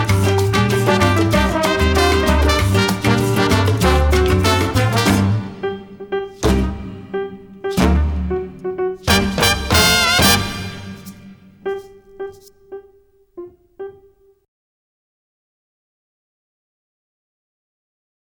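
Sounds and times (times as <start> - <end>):
urban Latin music: 0.0 - 12.5.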